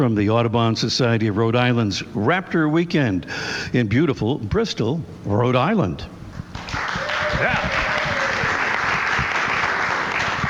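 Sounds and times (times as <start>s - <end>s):
speech: 0.0s - 7.9s
live show audience applause at Audubon Society of Rhode Island's Raptor Weekend: 6.5s - 10.4s.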